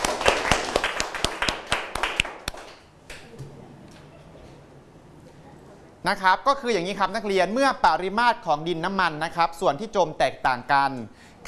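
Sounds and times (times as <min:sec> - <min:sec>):
students clapping in a classroom: 0:00.0 - 0:03.3
speech: 0:06.0 - 0:11.4.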